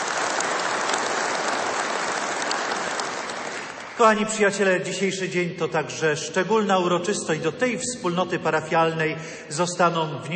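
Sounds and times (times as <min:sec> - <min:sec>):
audience applause: 0:00.0 - 0:04.2
speech: 0:04.0 - 0:10.3.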